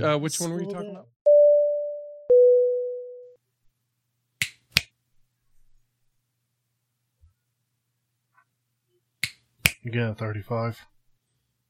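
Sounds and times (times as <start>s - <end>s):
speech: 0.0s - 1.2s, 9.8s - 10.9s
electronic beep tone: 1.3s - 3.4s
finger snaps during a number game: 4.4s - 4.9s, 9.2s - 9.8s.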